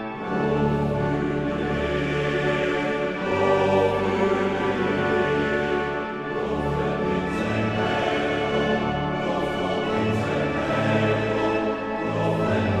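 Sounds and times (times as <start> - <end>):
male choir singing a psalm: 0.1 - 12.7.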